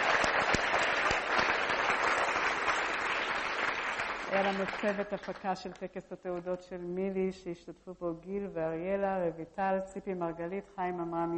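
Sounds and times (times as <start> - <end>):
audience applause: 0.0 - 5.4
speech: 4.3 - 11.3.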